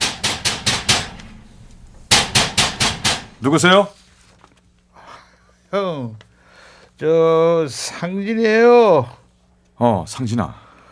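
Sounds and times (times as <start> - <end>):
knocking on a room door: 0.0 - 1.2, 2.1 - 3.4
speech: 3.4 - 4.0, 5.7 - 6.2, 7.0 - 9.2, 9.8 - 10.6.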